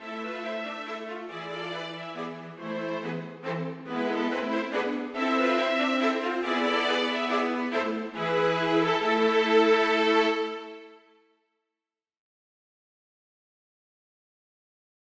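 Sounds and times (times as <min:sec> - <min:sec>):
string quartet playing a minuet: 0:00.0 - 0:11.0.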